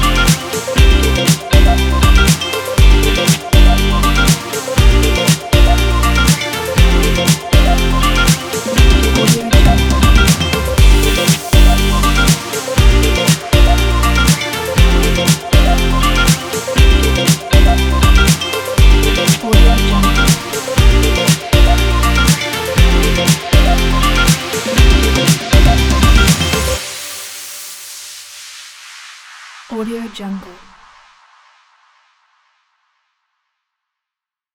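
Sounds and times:
upbeat guitar pop: 0:00.0 - 0:26.9.

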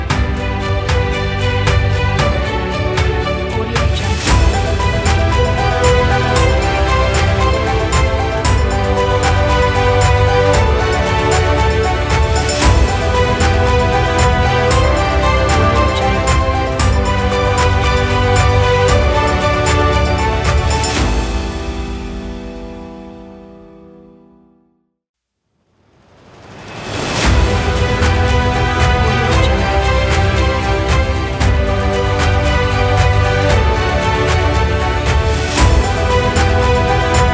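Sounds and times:
epic cinematic motivational music: 0:00.0 - 0:24.1, 0:26.0 - 0:37.3.

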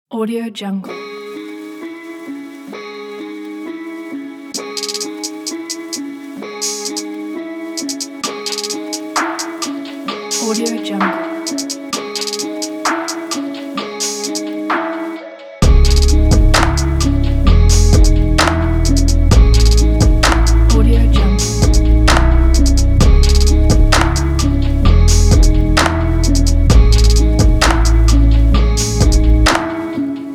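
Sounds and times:
sad hip hop music: 0:00.9 - 0:30.3.

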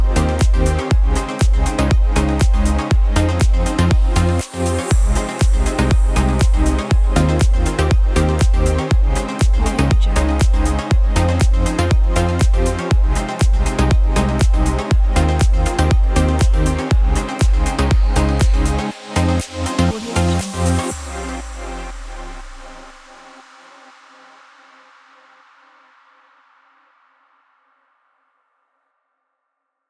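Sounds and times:
background electronic house music: 0:00.0 - 0:23.3.

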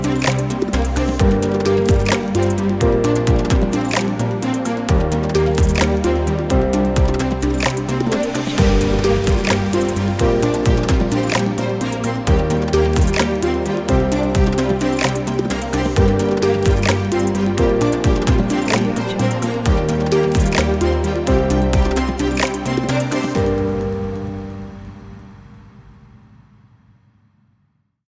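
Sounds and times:
digital corporate technology music: 0:00.0 - 0:25.4.

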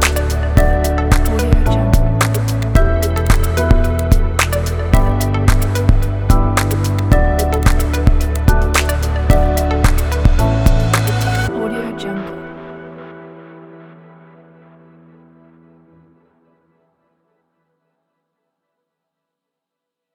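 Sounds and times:
corporate presentation background music: 0:00.0 - 0:15.9.

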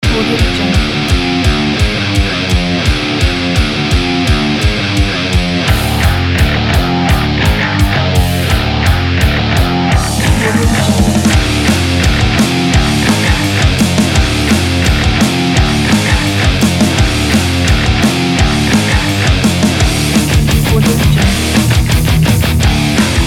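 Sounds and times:
aggressive heavy metal music: 0:00.0 - 0:23.2.

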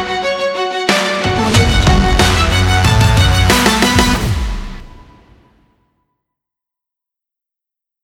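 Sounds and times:
dramatic action sport adventure intro music: 0:00.0 - 0:05.6.

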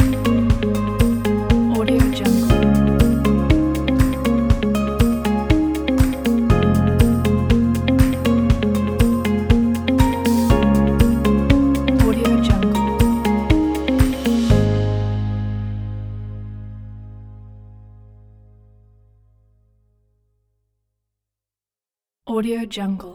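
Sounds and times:
calm corporate motivational music: 0:00.0 - 0:18.4.

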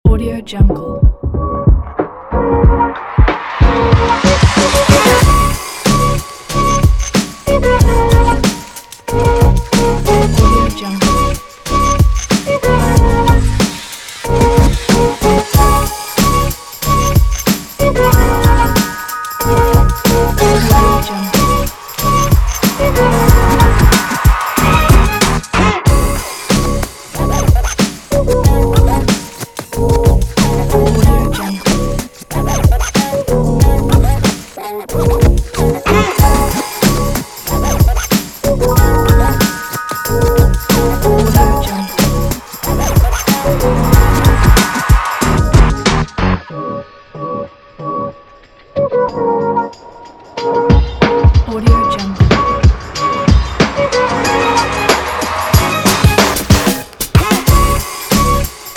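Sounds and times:
hip hop music: 0:00.1 - 0:58.7.

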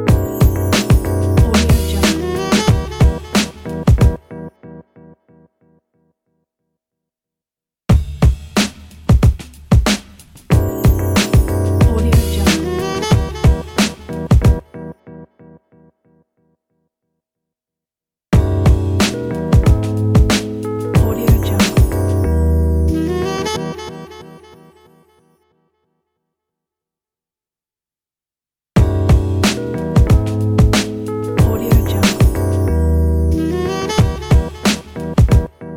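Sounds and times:
jazzy hip hop logo jingle: 0:00.1 - 0:04.2, 0:07.9 - 0:14.6, 0:18.3 - 0:24.2, 0:28.8 - 0:35.5.

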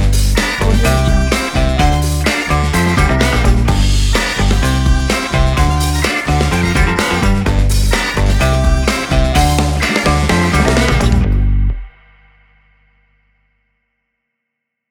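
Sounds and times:
advertising funk music: 0:00.0 - 0:11.9.

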